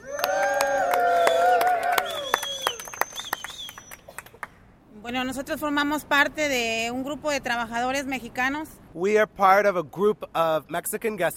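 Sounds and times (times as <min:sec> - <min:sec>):
audience applause and cheering: 0:00.0 - 0:04.5
speech: 0:05.1 - 0:11.3.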